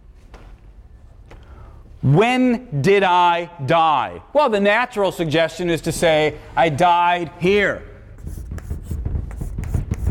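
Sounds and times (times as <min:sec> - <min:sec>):
speech: 0:02.0 - 0:07.9
pen scratching out an asterisk on paper: 0:08.2 - 0:10.0.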